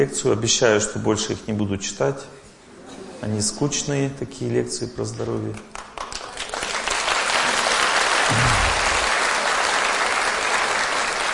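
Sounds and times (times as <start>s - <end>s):
speech: 0.0s - 2.4s, 3.2s - 5.8s
audience clapping in a sparsely attended hall after a lecture on health: 5.6s - 11.3s
low thump: 8.3s - 9.1s.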